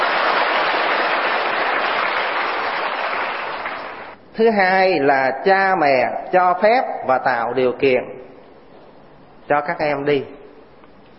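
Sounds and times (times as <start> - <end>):
audience applause: 0.0 - 4.2
speech: 4.4 - 8.2, 9.5 - 10.4.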